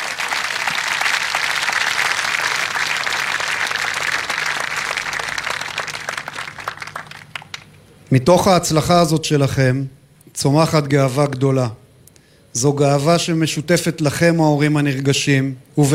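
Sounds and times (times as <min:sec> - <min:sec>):
audience applause at a ceremony: 0:00.0 - 0:07.8
speech: 0:08.1 - 0:11.8, 0:12.5 - 0:15.9.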